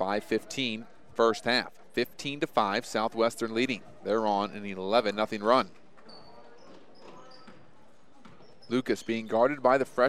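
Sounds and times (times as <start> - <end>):
speech: 0.0 - 5.8, 8.7 - 10.0
continuous play-by-play talk: 0.0 - 6.3, 8.6 - 10.0
basketball dribbling during a women's college game: 5.9 - 9.4.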